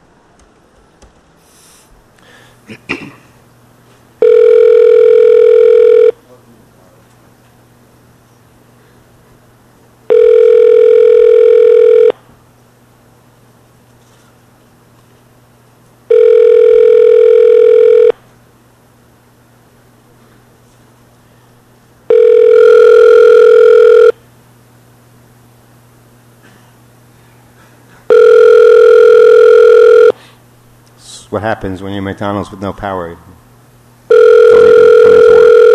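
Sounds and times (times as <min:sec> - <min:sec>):
faint hum: 0:00.0 - 0:35.7
speech: 0:02.7 - 0:03.0, 0:31.4 - 0:33.3
phone line ringback tone on an outgoing call: 0:04.2 - 0:06.2, 0:10.1 - 0:12.2, 0:16.1 - 0:18.2, 0:22.1 - 0:24.2, 0:28.1 - 0:30.2, 0:34.1 - 0:35.7.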